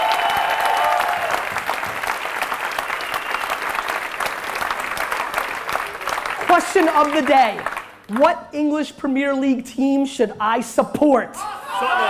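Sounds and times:
faint tonal cheers or whistles: 0.0s - 1.4s, 2.8s - 3.8s
crowd applauding: 0.0s - 8.2s
speech: 6.7s - 12.0s.

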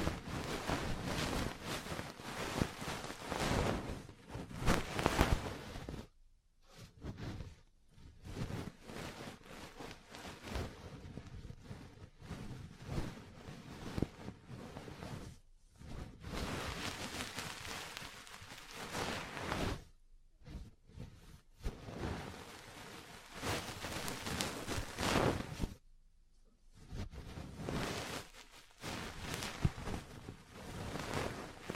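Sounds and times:
ear cleaning and massage crackly rubbing and scratching: 0.0s - 25.8s, 26.7s - 31.7s.

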